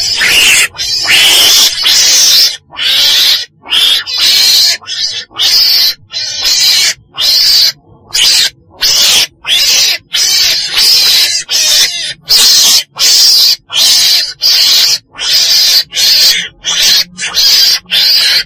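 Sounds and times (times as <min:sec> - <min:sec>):
weasel screeching: 0:00.0 - 0:18.4.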